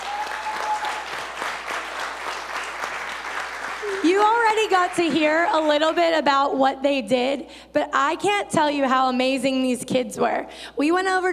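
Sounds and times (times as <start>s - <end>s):
audience clapping: 0.0s - 6.3s
speech: 4.0s - 11.3s.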